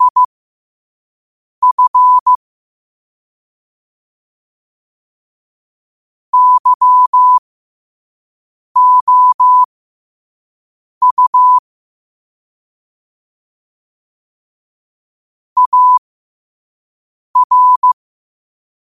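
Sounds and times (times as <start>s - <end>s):
morse code at 5 wpm: 0.0s - 0.3s, 1.6s - 2.4s, 6.4s - 7.4s, 8.8s - 9.7s, 11.0s - 11.6s, 15.6s - 16.0s, 17.4s - 18.0s.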